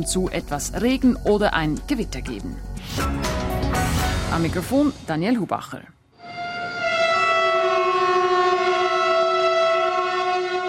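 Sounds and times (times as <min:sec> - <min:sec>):
speech: 0:00.0 - 0:03.4, 0:04.3 - 0:06.0
locomotive horns sounding in Switzerland: 0:06.2 - 0:10.6.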